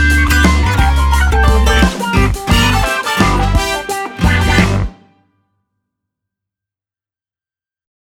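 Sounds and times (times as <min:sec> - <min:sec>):
late night talk show ident jingle: 0:00.9 - 0:05.1.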